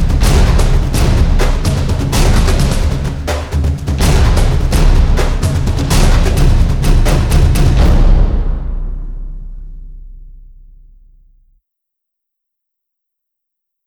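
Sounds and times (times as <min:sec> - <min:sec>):
tense menacing trailer music: 0:00.0 - 0:11.0.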